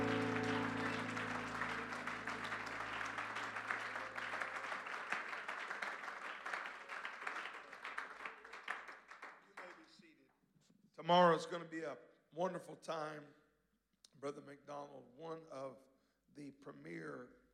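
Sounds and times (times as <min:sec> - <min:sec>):
audience hand clapping: 0:00.0 - 0:10.0
speech: 0:11.1 - 0:13.4, 0:14.2 - 0:17.4.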